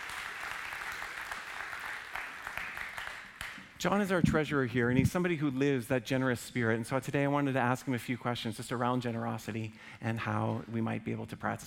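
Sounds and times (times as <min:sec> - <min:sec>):
crowd applause: 0:00.0 - 0:04.8
speech: 0:03.8 - 0:11.6.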